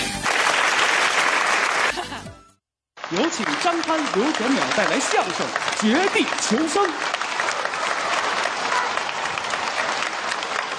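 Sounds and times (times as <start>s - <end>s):
applause: 0.0s - 2.2s, 3.0s - 10.7s
speech: 3.1s - 7.2s.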